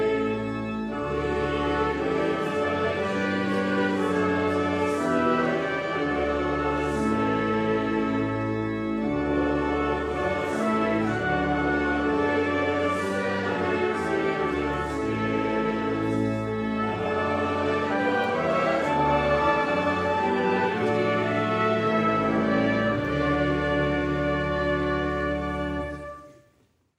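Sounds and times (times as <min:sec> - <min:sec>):
trumpets: 0:00.0 - 0:26.5.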